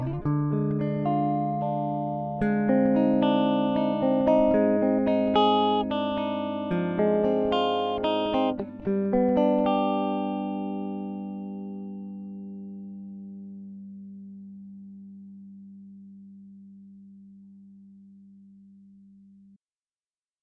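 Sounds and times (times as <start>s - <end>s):
blues music: 0.0s - 15.7s.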